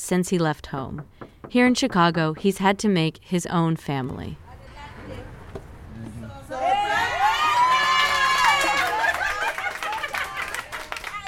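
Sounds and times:
speech: 0:00.0 - 0:04.4
women cheering at surprise birthday party: 0:06.3 - 0:11.2
laughter: 0:08.6 - 0:10.9.

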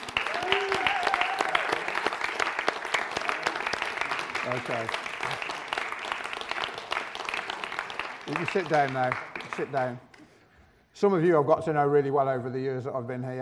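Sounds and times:
audience applause: 0:00.0 - 0:10.0
speech: 0:04.6 - 0:05.5, 0:08.3 - 0:10.1, 0:11.0 - 0:13.4.

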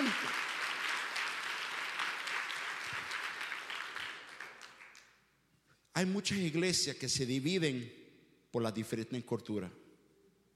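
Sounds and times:
audience applauding loudly: 0:00.0 - 0:05.1
speech: 0:06.0 - 0:09.8.

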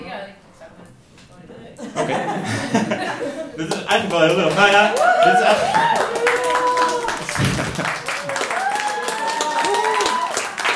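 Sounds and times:
speech: 0:01.8 - 0:03.0, 0:03.6 - 0:06.1
laughter: 0:01.8 - 0:08.4
audience applause: 0:03.6 - 0:10.7
crowd cheering and whooping: 0:04.8 - 0:10.7.

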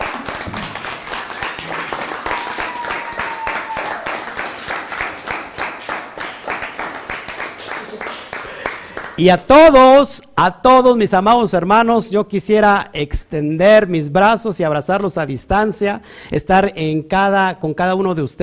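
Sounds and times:
audience applause: 0:00.0 - 0:09.2
speech: 0:09.2 - 0:18.4.

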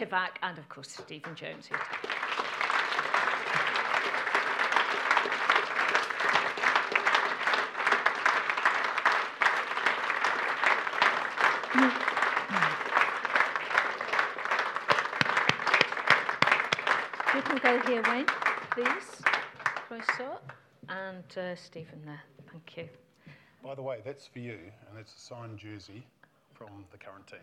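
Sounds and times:
speech: 0:00.0 - 0:02.6, 0:17.6 - 0:19.2, 0:19.9 - 0:23.0, 0:23.6 - 0:27.4
audience applause: 0:01.1 - 0:20.6.

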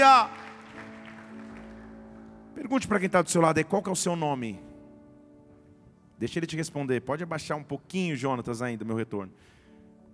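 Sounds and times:
speech: 0:00.0 - 0:00.4, 0:02.6 - 0:04.7, 0:06.2 - 0:09.6
audience applause: 0:00.0 - 0:02.2.

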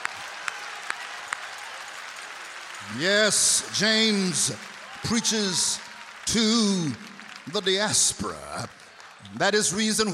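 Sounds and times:
audience clapping hands: 0:00.0 - 0:10.1
speech: 0:02.8 - 0:10.1.

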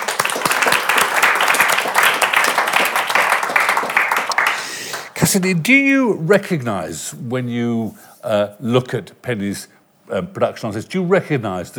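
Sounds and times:
audience applause welcoming a guest at an evening event about an opera: 0:00.0 - 0:05.4
speech: 0:05.2 - 0:11.7.

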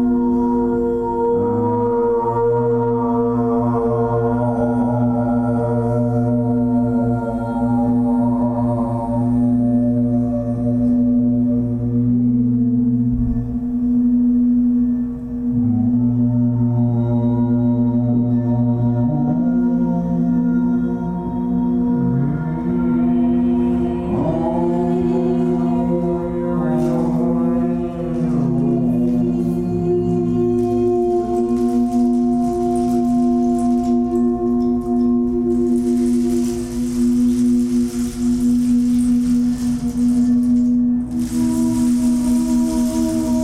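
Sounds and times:
voices singing long shifting notes: 0:00.0 - 0:14.0, 0:15.0 - 0:43.4
crystal singing bowl ringing: 0:28.2 - 0:43.4.

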